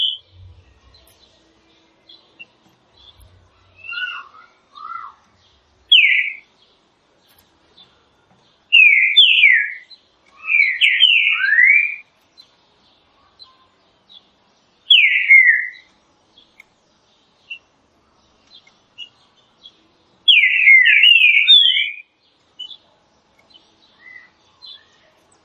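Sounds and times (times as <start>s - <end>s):
green-winged saltator whistling song: 0.0s - 0.4s, 2.4s - 5.2s, 5.9s - 6.5s, 8.7s - 12.1s, 14.9s - 15.9s, 20.3s - 22.8s.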